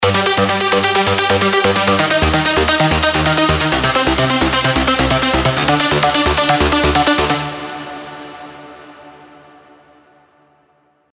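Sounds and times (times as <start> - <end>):
EDM arpeggiator: 0.0 - 8.1.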